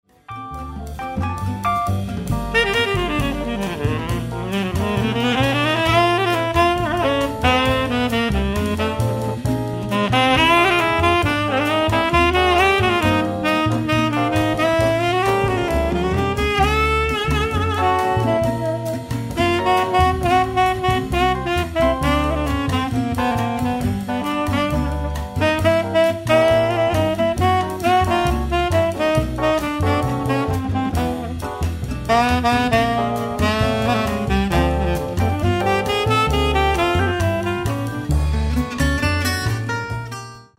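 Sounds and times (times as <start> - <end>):
saxophone: 0.2 - 39.7.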